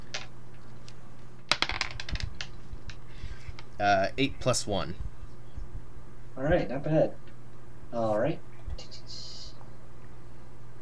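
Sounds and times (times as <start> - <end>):
dice rolling: 1.5 - 3.0
speech: 3.8 - 5.1, 6.4 - 7.2, 7.9 - 8.9.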